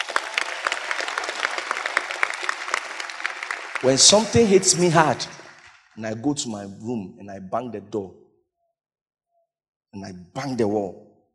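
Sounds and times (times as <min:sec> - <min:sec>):
crowd applauding: 0:00.0 - 0:06.4
speech: 0:03.8 - 0:05.4, 0:06.0 - 0:08.2, 0:10.0 - 0:11.0.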